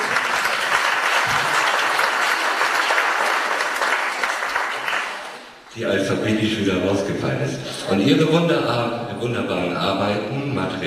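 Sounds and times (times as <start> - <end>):
audience applause: 0.0 - 5.6
speech: 5.8 - 10.8.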